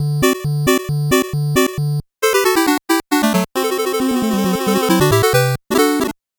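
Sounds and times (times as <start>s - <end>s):
8-bit jingle: 0.0s - 6.2s.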